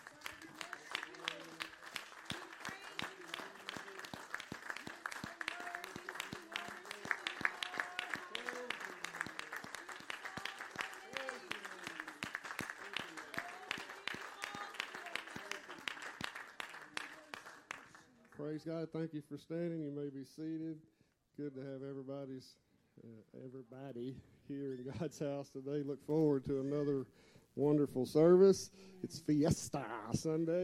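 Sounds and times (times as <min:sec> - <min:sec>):
audience hand clap applause: 0:00.0 - 0:18.3
speech: 0:18.6 - 0:30.6.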